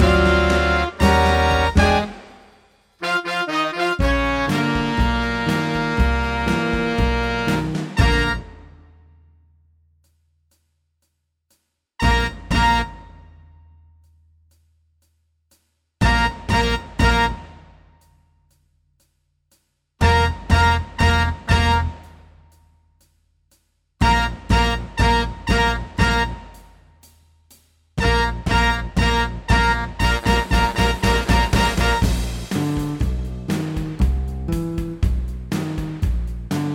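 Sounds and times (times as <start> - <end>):
120 BPM music: 0.0 - 9.4, 12.0 - 13.8, 16.0 - 18.4, 20.0 - 22.9, 24.0 - 36.7.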